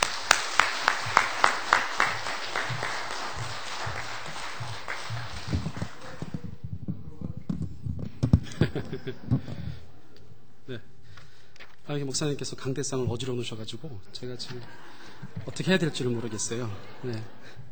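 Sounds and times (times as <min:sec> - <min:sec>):
audience applause welcoming a speaker: 0:00.0 - 0:07.3, 0:14.7 - 0:17.7
laughter: 0:00.0 - 0:10.3, 0:14.2 - 0:17.7
speech: 0:11.9 - 0:17.7.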